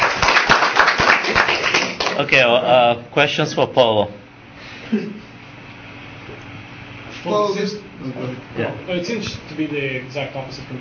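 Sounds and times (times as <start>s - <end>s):
audience clapping: 0.0s - 2.3s
speech: 2.2s - 4.2s, 4.9s - 5.2s, 7.2s - 10.8s.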